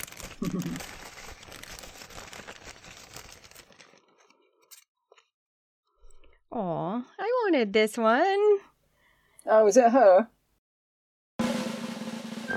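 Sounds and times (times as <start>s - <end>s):
plastic bag crinkling: 0.0s - 4.5s
speech: 0.4s - 1.0s, 6.6s - 8.7s, 9.5s - 10.4s.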